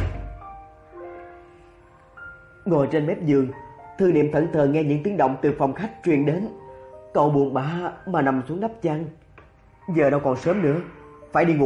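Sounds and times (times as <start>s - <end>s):
door being shut firmly: 0.0s - 0.5s
speech: 2.6s - 9.2s, 9.9s - 11.6s.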